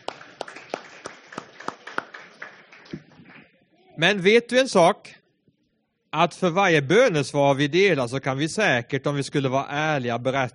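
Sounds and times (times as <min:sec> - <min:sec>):
audience applause: 0:00.0 - 0:03.5
speech: 0:04.0 - 0:05.2, 0:06.1 - 0:10.5.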